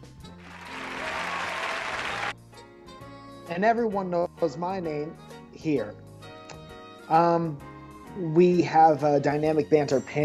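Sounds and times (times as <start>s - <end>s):
crowd applauding and cheering: 0.3s - 2.4s
speech: 3.5s - 6.0s, 7.1s - 10.2s.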